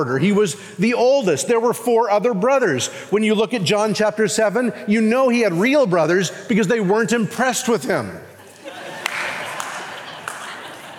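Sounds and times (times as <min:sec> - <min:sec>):
speech: 0:00.0 - 0:08.3
laughter: 0:08.4 - 0:10.9
sharp claps: 0:09.0 - 0:10.7.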